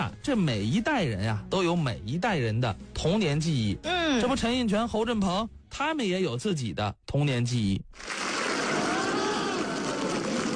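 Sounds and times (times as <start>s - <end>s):
speech: 0.0s - 8.1s
audience applause: 8.0s - 10.5s.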